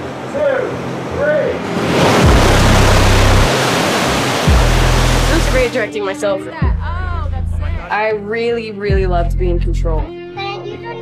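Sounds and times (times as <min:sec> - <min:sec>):
rushing water flooding a film set: 0:00.0 - 0:05.9
speech: 0:05.7 - 0:06.8, 0:07.9 - 0:10.2.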